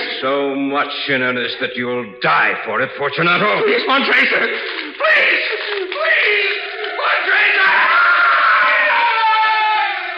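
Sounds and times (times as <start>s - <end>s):
speech: 0.2s - 6.6s
laughter: 3.2s - 8.5s
man screaming: 5.0s - 10.1s.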